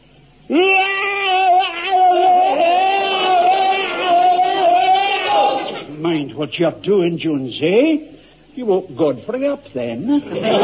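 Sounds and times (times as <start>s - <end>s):
man's bayonet drill battle scream: 0.5s - 5.9s
speech: 6.4s - 10.6s
laughter: 10.1s - 10.6s.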